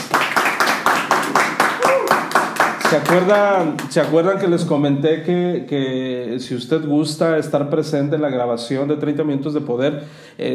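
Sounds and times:
audience clapping in steady unison: 0.0 - 4.4
voice whooping: 1.8 - 2.3
speech: 2.9 - 10.5.

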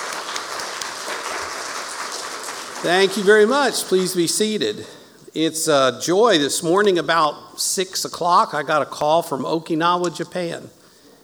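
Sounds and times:
audience applause: 0.0 - 4.2
speech: 2.8 - 10.8.

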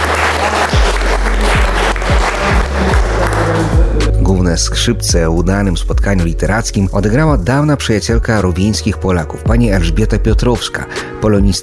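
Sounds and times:
audience applause after a theatre performance: 0.0 - 4.0
speech: 4.5 - 11.6.

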